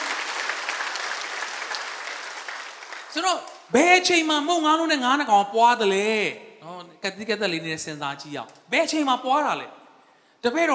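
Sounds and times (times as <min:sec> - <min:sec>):
congregation clapping in praise during a Sunday church service: 0:00.0 - 0:03.7
speech: 0:03.1 - 0:09.8, 0:10.4 - 0:10.7.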